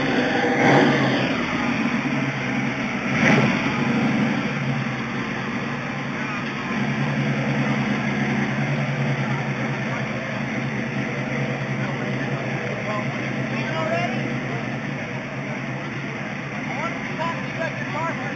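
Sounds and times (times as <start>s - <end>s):
Mustang Boss 302 Fastback engine revving: 0.0s - 18.3s.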